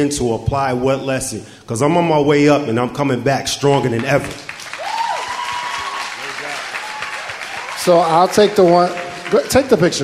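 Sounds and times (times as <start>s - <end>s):
speech: 0.0s - 4.5s, 7.8s - 10.0s
hand clapping: 4.0s - 10.0s.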